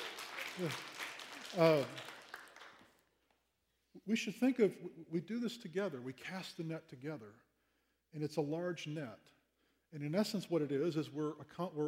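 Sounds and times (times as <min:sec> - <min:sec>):
audience applause: 0:00.0 - 0:02.9
speech: 0:00.6 - 0:00.9, 0:01.5 - 0:02.1, 0:04.0 - 0:07.5, 0:08.1 - 0:11.8.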